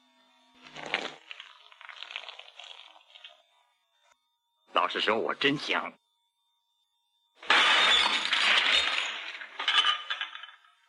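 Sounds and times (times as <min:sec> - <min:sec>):
speech: 0:04.8 - 0:06.0
glass shards tinkling: 0:07.4 - 0:10.7
glass smashing: 0:07.4 - 0:10.7.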